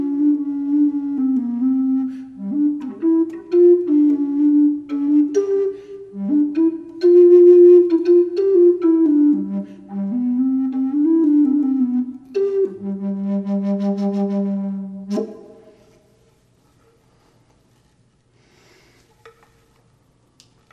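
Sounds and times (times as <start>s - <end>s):
flute with reverb: 0.0s - 16.2s.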